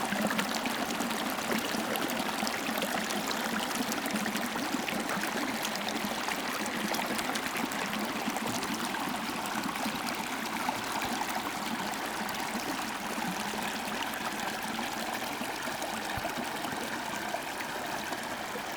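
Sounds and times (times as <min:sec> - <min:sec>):
small stream at Linhope Spout in Northumberland UK: 0:00.0 - 0:18.7.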